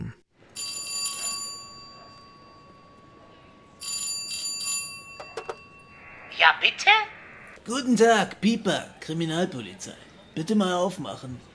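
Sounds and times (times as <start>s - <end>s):
doorbell ringing: 0.6s - 6.0s
speech: 6.4s - 11.5s.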